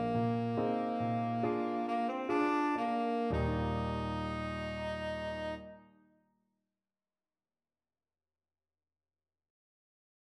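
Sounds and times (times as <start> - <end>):
tenor saxophone: 0.0 - 5.9.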